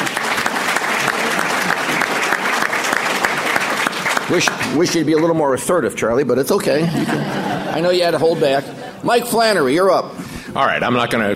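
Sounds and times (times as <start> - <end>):
audience applause: 0.0 - 5.4
laughter: 0.7 - 2.9, 6.7 - 9.6
speech: 4.3 - 11.3.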